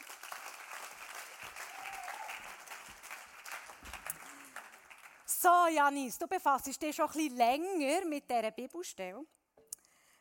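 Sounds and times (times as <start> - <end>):
audience applause: 0.0 - 5.3
speech: 5.4 - 9.4.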